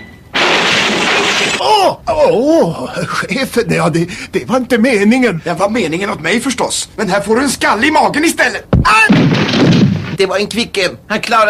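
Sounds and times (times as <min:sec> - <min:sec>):
rattle of scattering shards: 0:00.3 - 0:01.6, 0:09.1 - 0:10.2
thrown flower pot smashing: 0:00.3 - 0:01.8, 0:08.8 - 0:10.2
speech: 0:01.8 - 0:09.6, 0:10.2 - 0:11.4.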